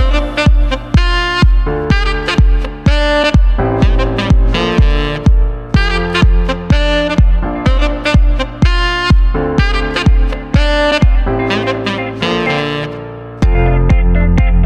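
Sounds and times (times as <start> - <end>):
piano: 0.0 - 14.6
saxophone: 0.0 - 14.6
snappy flute groove: 0.0 - 14.6.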